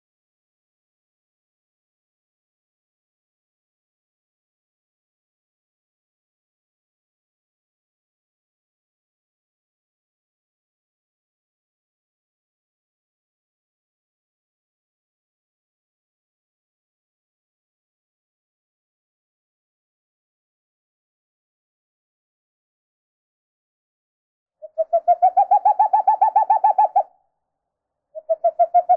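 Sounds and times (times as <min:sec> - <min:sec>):
owl call playback: 0:24.6 - 0:27.1, 0:28.2 - 0:28.9.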